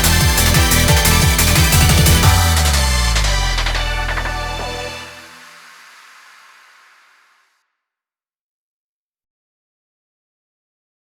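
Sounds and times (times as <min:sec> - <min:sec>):
off vocal instrumental music: 0:00.0 - 0:05.5.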